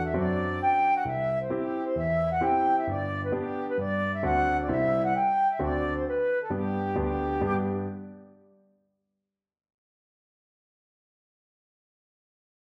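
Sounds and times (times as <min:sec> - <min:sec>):
flute playing a hornpipe: 0:00.0 - 0:08.2.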